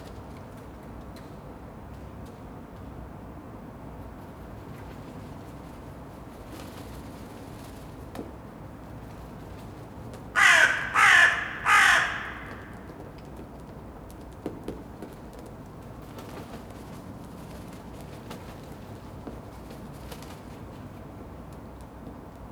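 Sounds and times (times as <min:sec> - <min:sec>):
crow cawing: 0:10.4 - 0:13.0.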